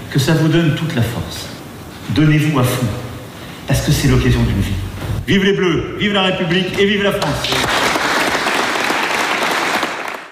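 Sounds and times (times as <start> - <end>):
speech: 0.1 - 3.0, 3.7 - 7.8
audience applause for Emmanuel Macron: 7.4 - 10.3.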